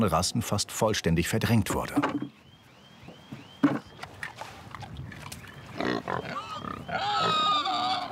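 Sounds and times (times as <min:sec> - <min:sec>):
speech: 0:00.0 - 0:02.4
Mangalitsa pigs grunting on a farm: 0:05.8 - 0:08.1.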